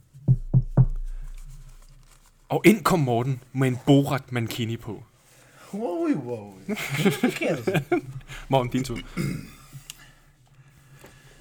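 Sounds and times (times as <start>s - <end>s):
knocking on a door: 0.2s - 1.6s
speech: 2.5s - 5.1s, 5.7s - 9.6s
laughter: 6.6s - 10.0s.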